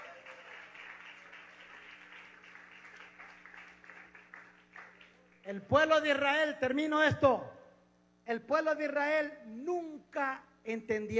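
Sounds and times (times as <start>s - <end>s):
audience applause: 0.0s - 5.3s
speech: 5.5s - 7.6s, 8.3s - 11.1s.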